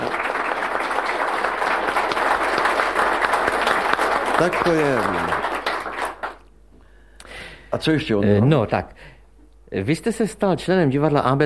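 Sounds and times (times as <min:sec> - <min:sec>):
audience applause: 0:00.0 - 0:06.5
speech: 0:04.4 - 0:05.4, 0:07.8 - 0:11.4.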